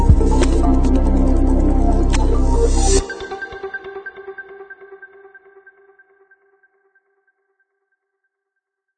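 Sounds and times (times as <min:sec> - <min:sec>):
corporate technology digital music: 0:00.0 - 0:05.4.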